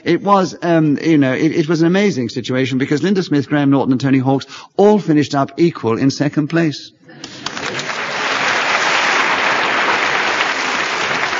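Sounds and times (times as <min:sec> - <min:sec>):
speech: 0:00.0 - 0:07.3
audience applause: 0:07.2 - 0:11.3.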